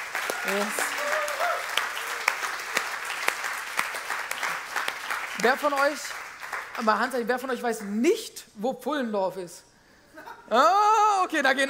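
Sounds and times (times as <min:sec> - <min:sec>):
audience applause: 0:00.0 - 0:07.0
speech: 0:00.4 - 0:00.8, 0:05.4 - 0:06.2, 0:06.8 - 0:09.7, 0:10.5 - 0:11.6.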